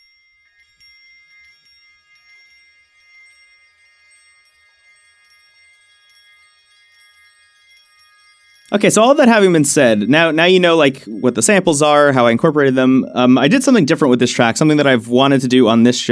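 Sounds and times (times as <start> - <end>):
wind chimes ringing: 0.0 - 16.1
speech: 8.7 - 16.1.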